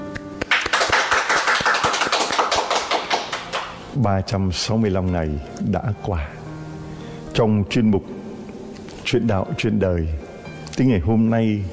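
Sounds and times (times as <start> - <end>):
round of applause: 0.4 - 3.8
speech: 4.0 - 6.4, 7.4 - 8.2, 9.1 - 10.2, 10.8 - 11.7.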